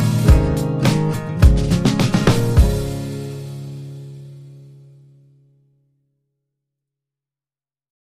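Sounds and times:
drums: 0.0s - 4.3s
strummed guitars: 0.0s - 5.4s.

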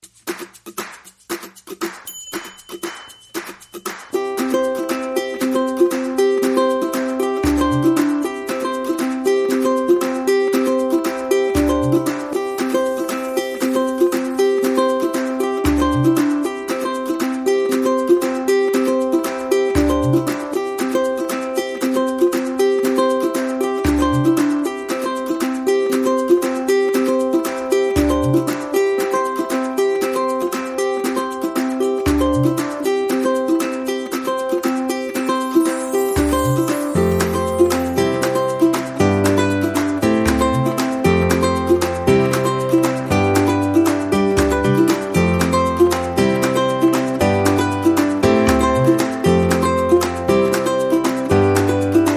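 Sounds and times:
percussion: 0.0s - 52.1s
ukulele: 0.0s - 52.1s.

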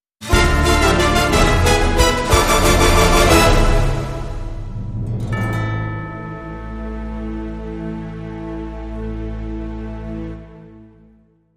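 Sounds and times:
music sting: 0.3s - 8.7s.

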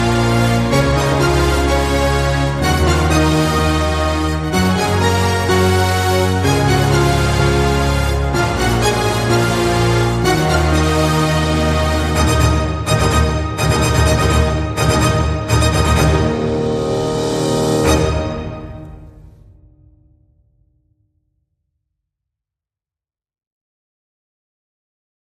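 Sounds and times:
orchestral music without choir: 0.0s - 19.9s.

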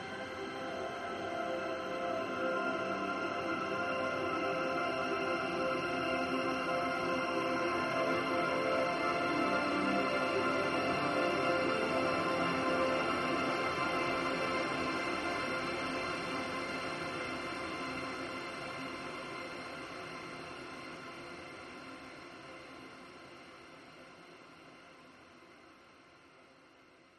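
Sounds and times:
ambient music mix: 0.0s - 19.0s.

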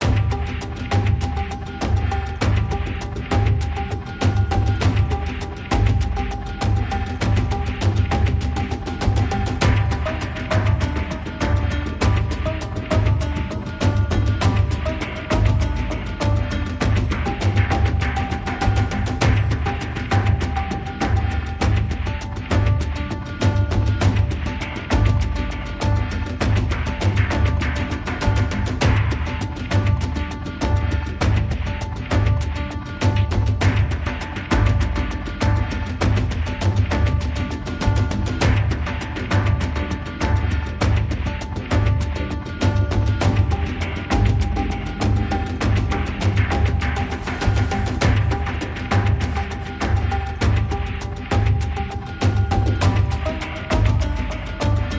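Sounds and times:
percussion: 0.0s - 54.9s.

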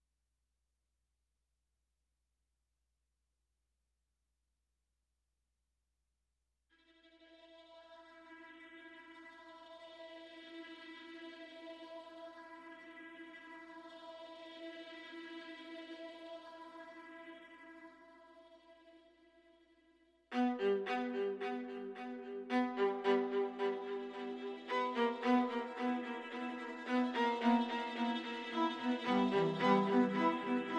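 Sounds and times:
strings: 20.3s - 30.7s.

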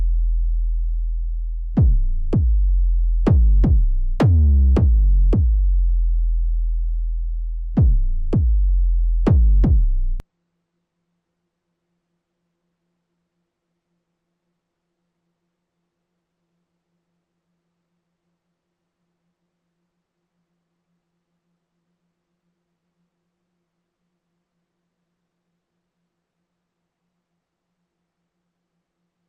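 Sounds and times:
percussion: 0.0s - 10.2s.

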